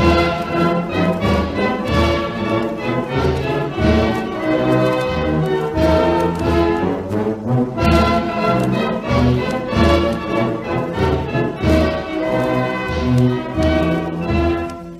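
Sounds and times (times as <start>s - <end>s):
1930s instrumental music: 0.0s - 14.9s.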